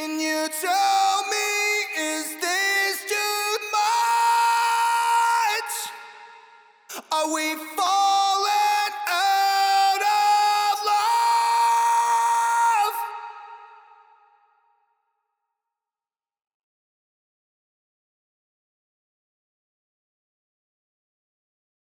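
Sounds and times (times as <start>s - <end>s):
heavy wet main vocal a cappella: 0.0s - 14.5s.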